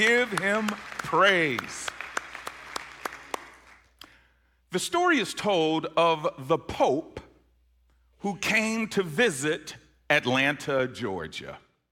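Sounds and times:
speech: 0.0 - 2.0, 4.7 - 7.2, 8.2 - 11.6
audience clapping hands in praise: 0.0 - 4.0.

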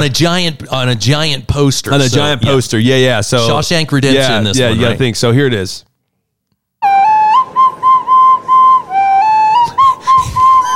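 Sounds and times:
speech: 0.0 - 5.9
small recorder playing a simple melody: 6.8 - 10.7.

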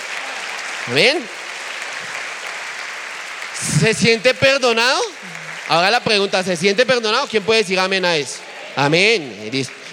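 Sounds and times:
applause: 0.0 - 9.9
speech: 0.8 - 1.4, 3.6 - 9.9.

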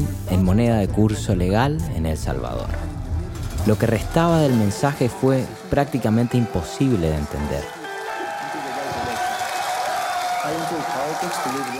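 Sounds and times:
speech: 0.3 - 2.9, 3.6 - 7.8, 10.4 - 11.7
cheering and shouting voices: 3.8 - 11.7
large audience applause at a conference: 4.2 - 11.7.

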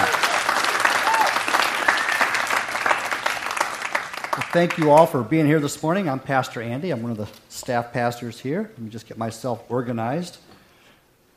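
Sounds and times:
people clapping: 0.0 - 5.3
speech: 4.5 - 10.5.

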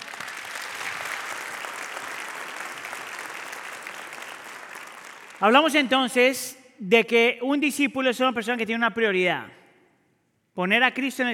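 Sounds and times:
audience applause: 0.0 - 5.4
speech: 5.4 - 9.6, 10.6 - 11.3.

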